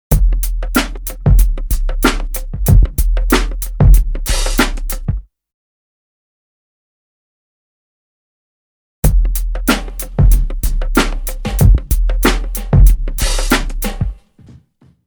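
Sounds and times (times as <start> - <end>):
drum loop: 0.1 - 5.2, 9.0 - 14.2.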